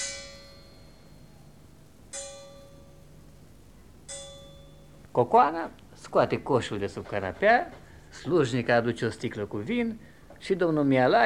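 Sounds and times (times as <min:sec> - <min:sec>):
distant Peleș Castle clock chiming the half hour: 0:00.0 - 0:05.1
faint low hum: 0:00.0 - 0:11.2
speech: 0:05.2 - 0:11.2.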